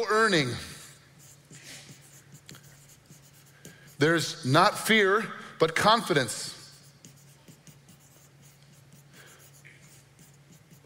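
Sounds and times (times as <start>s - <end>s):
speech: 0.0s - 0.7s, 4.0s - 6.6s
pen scratching in fast handwriting: 1.2s - 4.5s, 6.7s - 10.8s.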